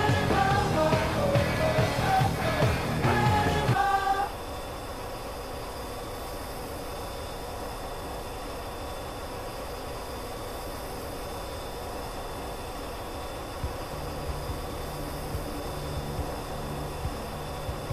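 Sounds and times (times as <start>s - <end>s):
F-14 Tomcat cockpit roar with whining tones: 0.0s - 17.9s
hiss with thin high whines in F-14 Tomcat cockpit: 0.0s - 17.9s
low hum: 0.0s - 17.9s.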